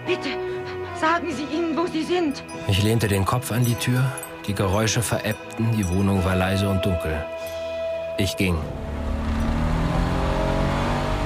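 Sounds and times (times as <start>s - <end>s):
speech: 0.1s - 7.6s, 8.2s - 9.2s
car engine roaring under hard acceleration on a motorway: 8.6s - 11.2s.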